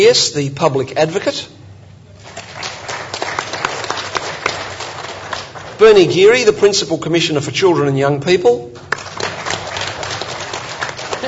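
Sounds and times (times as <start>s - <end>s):
speech: 0.0s - 1.6s, 5.8s - 9.0s
audience clapping welcoming a guest to a panel: 2.2s - 6.2s, 8.8s - 11.2s.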